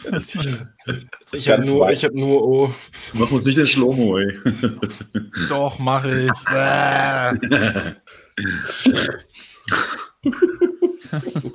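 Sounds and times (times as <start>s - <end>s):
laughter: 0.0s - 1.8s, 3.6s - 8.1s, 9.7s - 11.5s
speech: 0.0s - 10.5s, 11.1s - 11.5s
loud throaty burps during a livestream: 6.1s - 10.2s.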